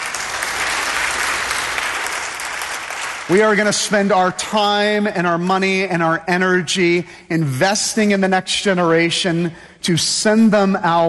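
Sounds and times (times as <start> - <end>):
audience applause: 0.0 - 3.3
speech: 3.3 - 11.0.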